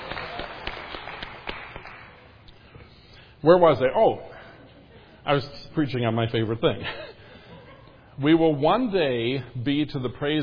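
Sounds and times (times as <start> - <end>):
audience applause: 0.0 - 2.2
speech: 3.4 - 4.3, 5.2 - 7.1, 8.2 - 10.4
laughter: 6.8 - 8.2.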